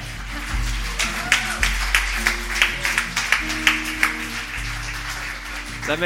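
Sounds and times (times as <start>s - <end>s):
audience applause: 0.0s - 6.0s.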